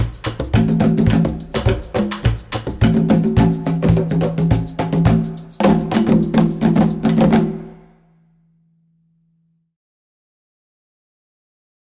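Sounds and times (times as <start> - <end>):
merengue music: 0.0 - 7.9.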